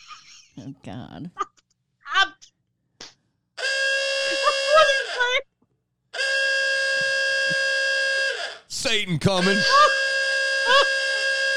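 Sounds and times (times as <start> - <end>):
speech: 0.1 - 1.5, 8.9 - 9.9
alarm horn blaring: 3.6 - 5.4, 6.1 - 11.5.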